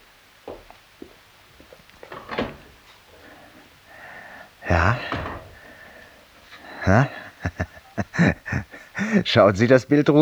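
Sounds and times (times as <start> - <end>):
wall cupboard door opening with creaking and rattling: 0.5 - 6.3
wall cupboard clicks and knocks: 2.0 - 3.1, 5.0 - 5.6
laughter: 6.5 - 9.4
speech: 6.9 - 8.3, 9.1 - 10.1.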